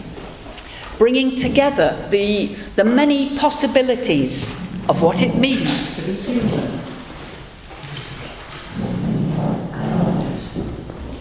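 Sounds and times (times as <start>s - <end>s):
speech: 1.0s - 6.8s
chairs being moved and cleared away: 4.4s - 11.2s.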